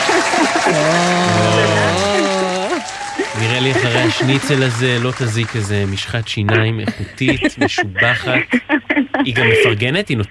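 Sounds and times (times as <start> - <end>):
applause: 0.0 - 6.8
laughter: 0.0 - 10.2
speech: 3.7 - 10.2.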